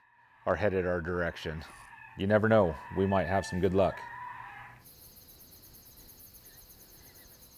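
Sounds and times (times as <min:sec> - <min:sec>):
recorded rabbit distress call used as lure: 0:00.4 - 0:04.8.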